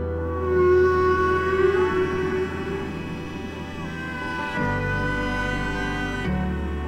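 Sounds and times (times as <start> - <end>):
whale song: 0.0 - 6.8.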